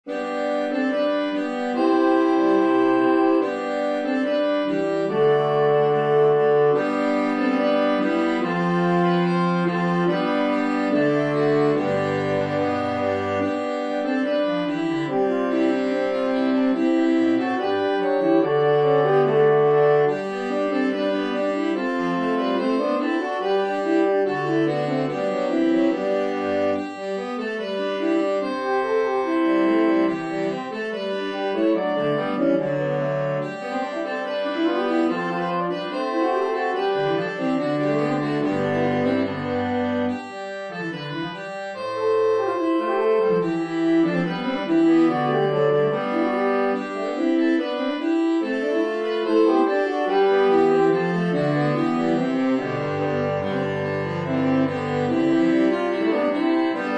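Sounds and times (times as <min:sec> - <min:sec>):
saxophone: 0:00.0 - 0:56.9.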